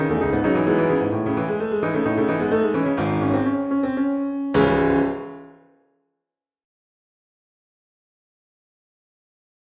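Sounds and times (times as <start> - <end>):
classical house piano remix: 0.0 - 5.5.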